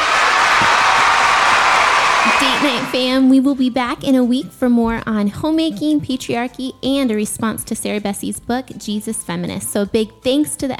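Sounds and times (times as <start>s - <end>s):
audience applause and cheering: 0.0s - 3.2s
speech: 2.6s - 10.7s.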